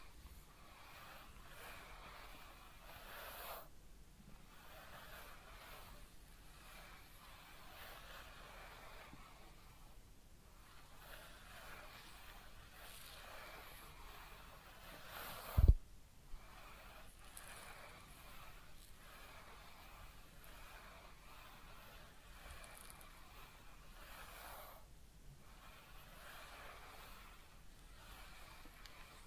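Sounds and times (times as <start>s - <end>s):
head massage and ear cleaning: 0.0s - 29.2s.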